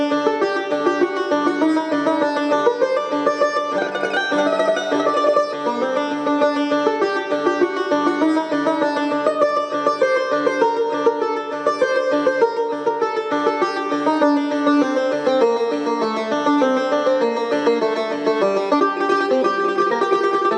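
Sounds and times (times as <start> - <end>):
tar playing a study: 0.0 - 20.5.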